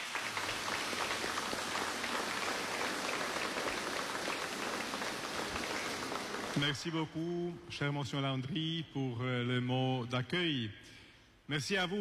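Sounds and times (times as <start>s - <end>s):
congregation applause at a Mass in a church: 0.0s - 6.8s
speech: 6.6s - 11.9s.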